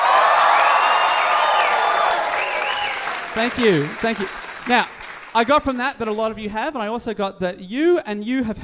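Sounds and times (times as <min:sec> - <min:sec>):
audience applause and cheering: 0:00.0 - 0:05.8
speech: 0:03.4 - 0:08.6.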